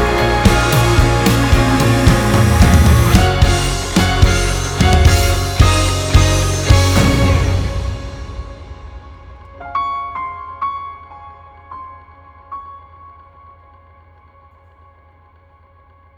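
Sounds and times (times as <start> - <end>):
instrumental music: 0.0 - 10.0.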